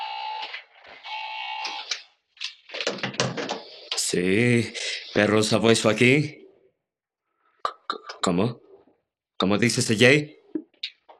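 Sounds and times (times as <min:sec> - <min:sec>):
telephone ringing: 0:00.0 - 0:01.9
speech: 0:04.1 - 0:06.4, 0:08.3 - 0:08.6, 0:09.4 - 0:10.4.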